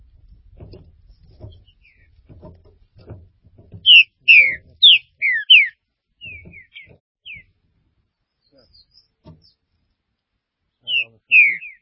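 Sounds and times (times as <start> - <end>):
low bumping noises: 0.0 - 5.3, 6.0 - 9.7
green-winged saltator song of downslurred whistles: 3.9 - 7.4, 10.9 - 11.8.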